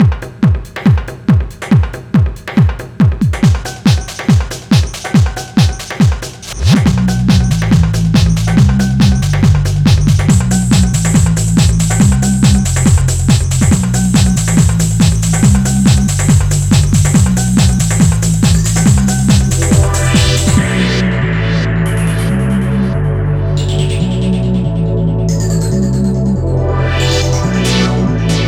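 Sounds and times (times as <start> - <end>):
club techno music: 0.0 - 28.4.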